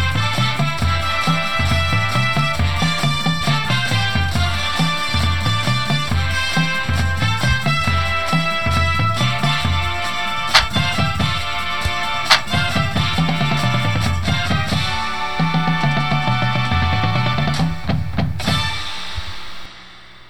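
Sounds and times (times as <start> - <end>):
bass: 0.0 - 19.7
music: 0.0 - 20.2.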